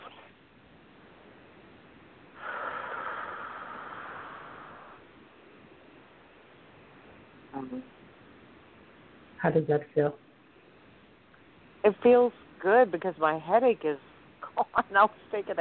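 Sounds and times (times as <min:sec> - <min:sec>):
long deep breath drawn in: 0:02.4 - 0:05.0
speech: 0:07.6 - 0:08.0, 0:09.4 - 0:10.2, 0:11.8 - 0:14.1, 0:14.8 - 0:15.5.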